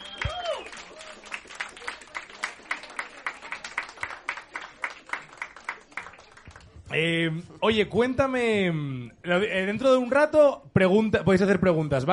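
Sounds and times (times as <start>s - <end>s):
vocal whoop: 0.0s - 0.7s
audience applause: 0.0s - 6.8s
speech: 6.9s - 12.1s.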